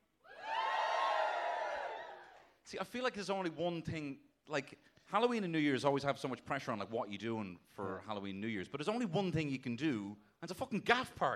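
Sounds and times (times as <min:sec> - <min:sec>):
live audience cheering: 0:00.2 - 0:02.5
speech: 0:02.7 - 0:11.3.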